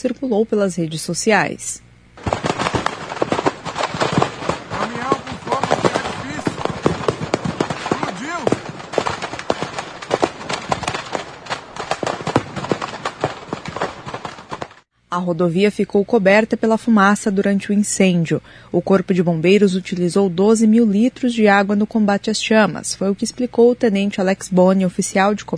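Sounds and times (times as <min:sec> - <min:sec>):
speech: 0:00.0 - 0:02.4, 0:15.2 - 0:25.5
fireworks exploding in a burning truck: 0:02.2 - 0:14.9.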